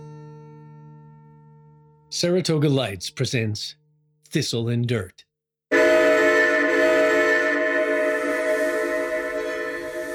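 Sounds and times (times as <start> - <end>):
speech: 2.1 - 5.3
rail car rumble: 5.7 - 10.1
train whistle blast: 5.7 - 10.1.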